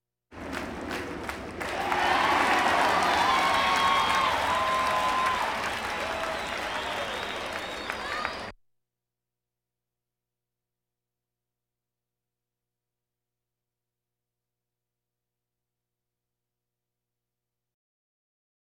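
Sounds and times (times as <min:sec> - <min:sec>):
crowds: 0:00.4 - 0:08.5.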